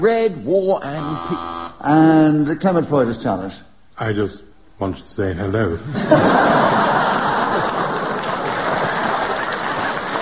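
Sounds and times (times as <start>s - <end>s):
speech: 0.0s - 6.8s
laughter: 5.9s - 10.1s
audience clapping: 7.1s - 10.1s.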